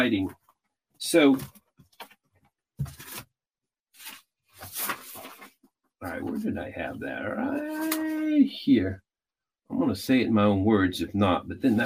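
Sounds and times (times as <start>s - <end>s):
speech: 0.0s - 0.4s, 1.0s - 1.6s, 6.0s - 9.0s, 9.7s - 11.8s
pages of notes being flipped through: 1.4s - 3.3s, 4.0s - 6.5s, 11.7s - 11.8s.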